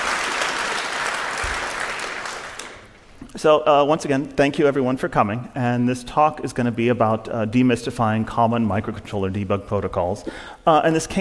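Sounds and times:
audience applause: 0:00.0 - 0:03.0
speech: 0:03.4 - 0:11.1.

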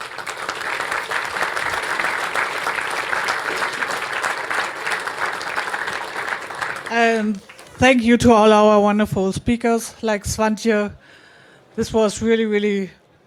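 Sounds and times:
audience applause: 0:00.0 - 0:08.0
speech: 0:06.9 - 0:11.2, 0:11.8 - 0:13.0.

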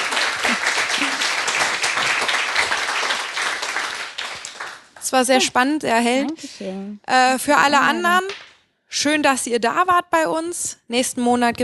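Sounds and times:
applause: 0:00.0 - 0:05.2
speech: 0:05.1 - 0:11.6.

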